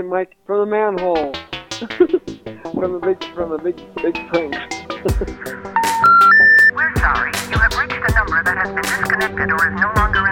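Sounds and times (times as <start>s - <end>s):
speech: 0.0s - 6.0s, 6.8s - 10.2s
telephone intercept tones for a disconnected number: 5.8s - 6.7s.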